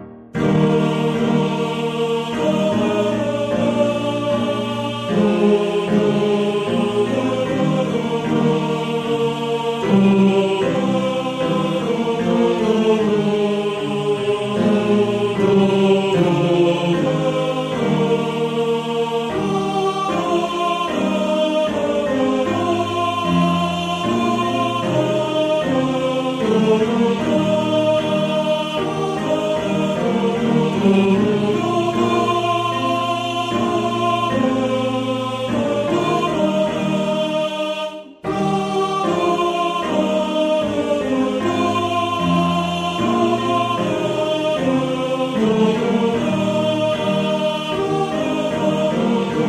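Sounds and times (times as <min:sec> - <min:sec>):
tenor singing: 0:00.4 - 0:49.4.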